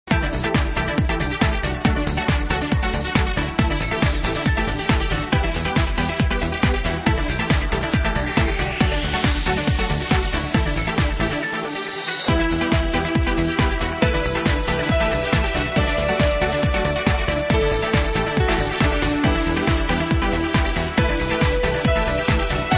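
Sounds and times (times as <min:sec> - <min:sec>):
trance party mix: 0:00.1 - 0:22.7.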